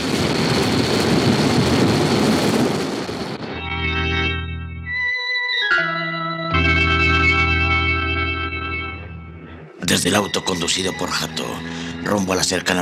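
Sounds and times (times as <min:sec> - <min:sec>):
explosion shaking a forest: 0:00.0 - 0:03.5
droning electronic tones: 0:03.4 - 0:12.7
speech: 0:09.9 - 0:12.7.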